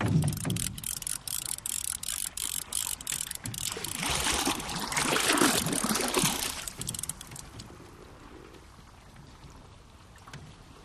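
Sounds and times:
fishing reel: 0:00.2 - 0:07.7.

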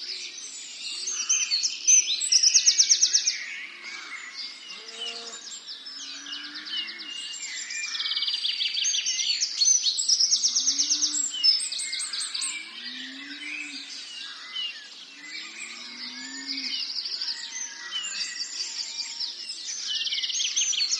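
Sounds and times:
many songbirds singing at April dawn in rural England: 0:00.0 - 0:20.9
distant cow bellowing in rural England: 0:04.7 - 0:05.4.

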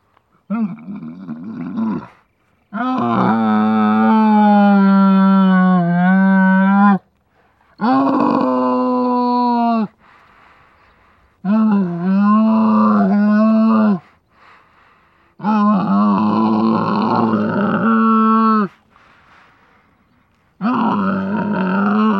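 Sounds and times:
camel bellowing: 0:00.5 - 0:07.1, 0:07.8 - 0:09.9, 0:11.4 - 0:14.0, 0:15.4 - 0:18.8, 0:20.6 - 0:22.1.

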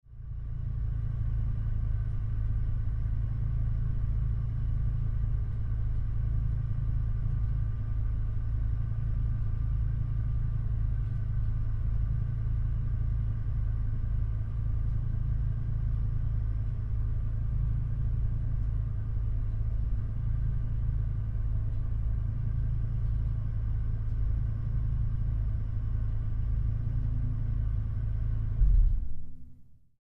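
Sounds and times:
Dodge Ram engine idling recorded on board: 0:00.1 - 0:29.1.

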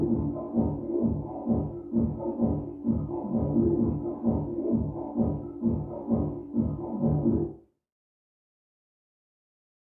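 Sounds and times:
electronic dance music: 0:00.0 - 0:07.6.

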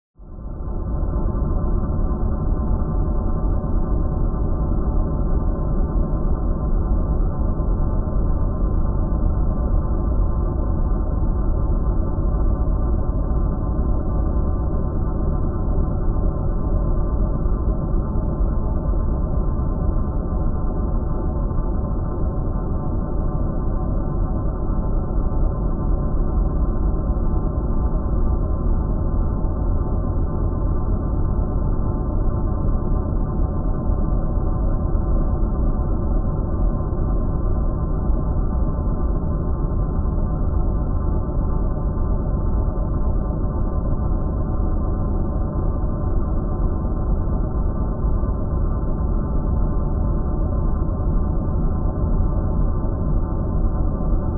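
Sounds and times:
alien power chamber drones: 0:00.2 - 0:54.3.

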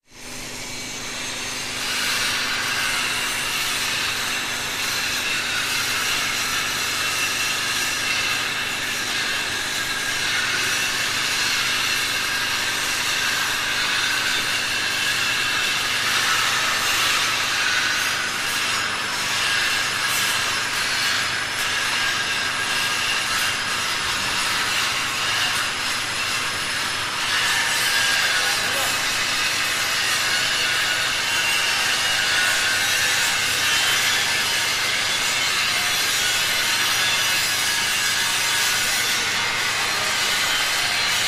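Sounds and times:
industrial factory ambience: 0:00.1 - 0:41.2.

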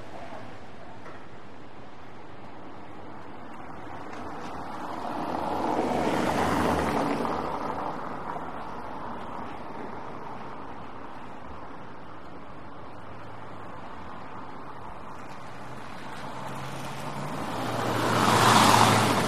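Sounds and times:
vehicles passing on wet cobblestone street at slow to medium speed: 0:00.0 - 0:19.2
tires through puddles on cobblestones: 0:02.2 - 0:19.2.

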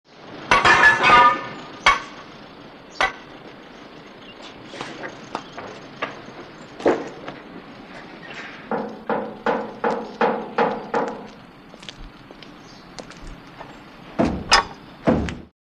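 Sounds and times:
quiet construction site ambience: 0:00.1 - 0:15.5
metal clanks and bangs: 0:00.5 - 0:02.3, 0:04.9 - 0:11.3, 0:14.1 - 0:15.5.

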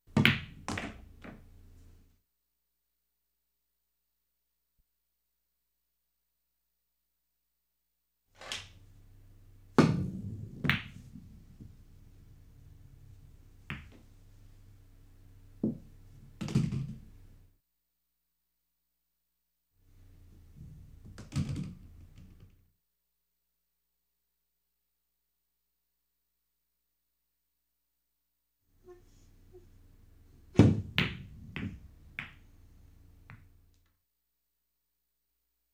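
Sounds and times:
billiards game sound: 0:00.1 - 0:01.5, 0:09.8 - 0:14.1, 0:15.6 - 0:17.3, 0:20.5 - 0:22.6, 0:30.5 - 0:33.9.

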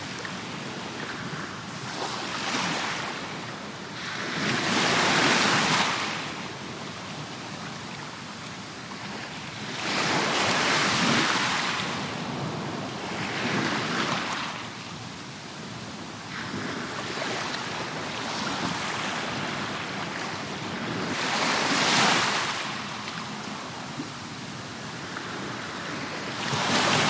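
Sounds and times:
close-up waves and surf: 0:00.0 - 0:27.0.

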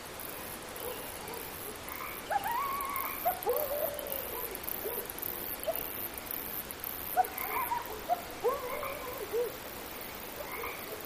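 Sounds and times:
coyote yipping chorus: 0:00.8 - 0:06.1, 0:07.0 - 0:09.7, 0:10.3 - 0:11.0.

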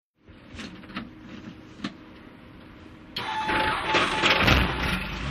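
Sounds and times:
helicopter starting heard from the interior: 0:03.2 - 0:05.2.

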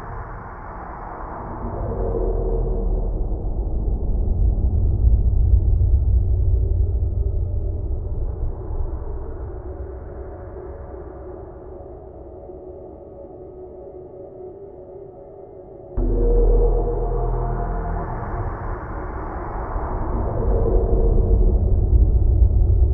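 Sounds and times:
deep hollow growl impact: 0:01.6 - 0:10.5, 0:16.0 - 0:22.9.

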